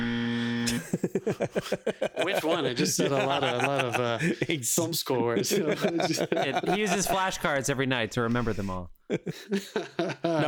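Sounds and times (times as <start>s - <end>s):
game show buzzer: 0.0s - 0.8s
laughter: 0.6s - 10.4s
speech: 0.9s - 10.4s.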